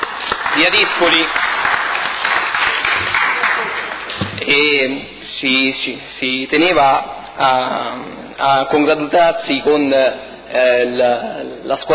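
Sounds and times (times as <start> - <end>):
applause welcoming a triathlon team in a council chamber: 0.0 - 4.4
speech: 0.6 - 1.5, 4.5 - 11.9.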